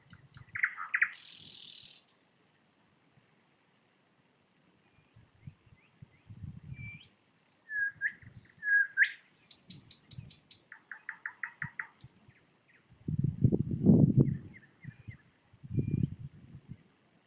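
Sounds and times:
nightingale singing: 0.0 - 2.3, 4.4 - 12.9, 14.2 - 17.2.

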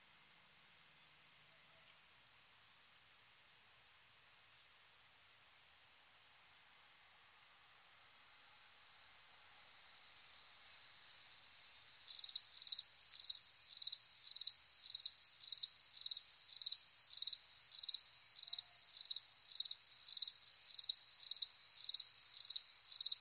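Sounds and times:
cricket chirps: 0.0 - 23.1.

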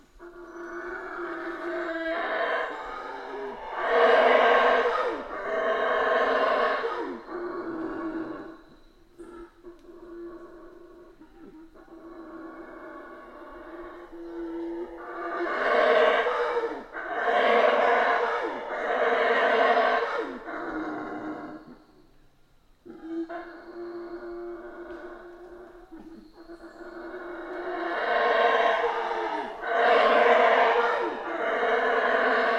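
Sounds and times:
Colombian red howler monkey roaring: 0.0 - 21.9, 22.8 - 32.5.

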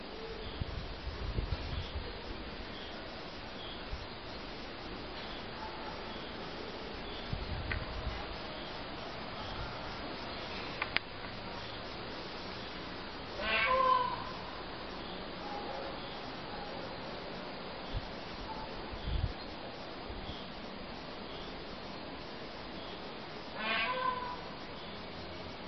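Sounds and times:
soft background hiss: 0.0 - 25.6
peafowl call: 13.4 - 14.4, 23.6 - 24.5.

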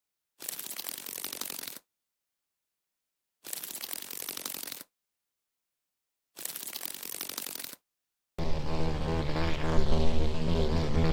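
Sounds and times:
common cockchafer droning hum: 8.4 - 11.1.

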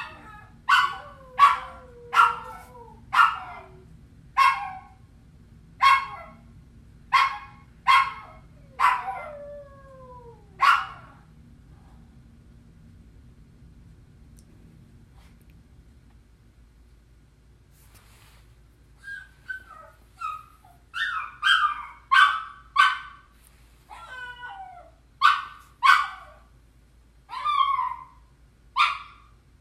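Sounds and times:
hunting dog barking: 0.0 - 3.8, 4.4 - 5.0, 5.8 - 6.4, 7.1 - 9.3, 10.6 - 11.2, 20.2 - 23.3, 25.2 - 26.5, 28.8 - 29.3
hunting dog whining and whimpering: 0.0 - 3.8, 19.0 - 22.0, 23.9 - 25.0.

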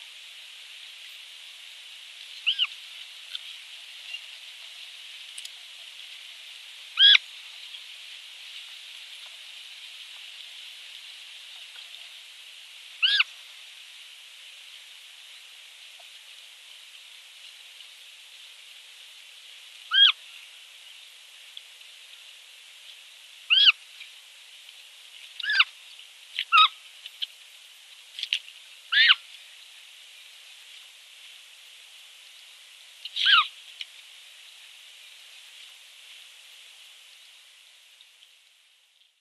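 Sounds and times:
hiss: 0.0 - 39.2
giant otter pup screaming: 13.0 - 13.3, 19.9 - 20.2, 23.5 - 23.8, 25.4 - 25.7, 26.5 - 26.7, 28.9 - 29.2, 33.2 - 33.5.

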